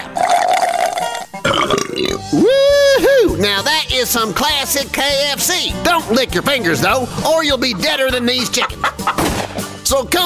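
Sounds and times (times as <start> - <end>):
loud burps: 0.0 - 2.4
speech: 3.5 - 9.3, 9.9 - 10.2.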